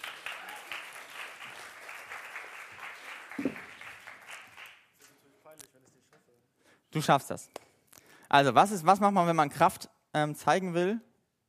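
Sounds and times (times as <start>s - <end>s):
crowd applause: 0.0s - 4.8s
speech: 7.0s - 7.6s, 8.3s - 11.1s.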